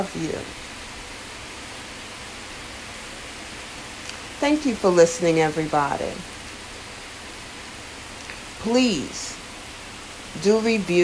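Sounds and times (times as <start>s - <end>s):
speech: 0.0s - 0.7s, 4.4s - 6.4s, 8.6s - 9.4s, 10.3s - 11.0s
falling rain: 0.0s - 11.0s.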